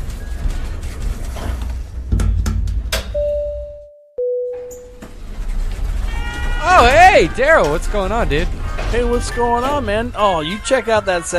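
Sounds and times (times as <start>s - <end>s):
low rumbling background: 0.0s - 11.2s
elevator chime as doors close: 3.1s - 5.3s
speech: 6.8s - 11.3s.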